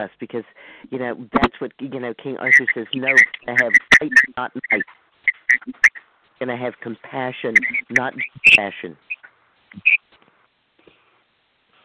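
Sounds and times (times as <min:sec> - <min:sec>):
speech: 0:00.0 - 0:09.1, 0:09.7 - 0:10.0
cricket chirping: 0:02.4 - 0:06.0, 0:07.5 - 0:10.0.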